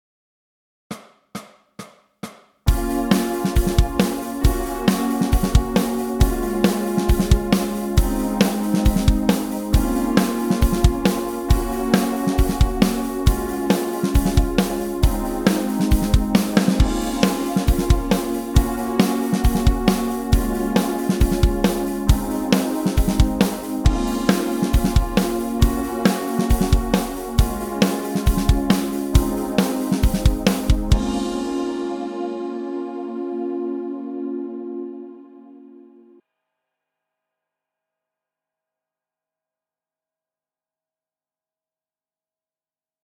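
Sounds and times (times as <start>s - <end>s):
VI IV I V progression backing track: 2.7s - 36.2s.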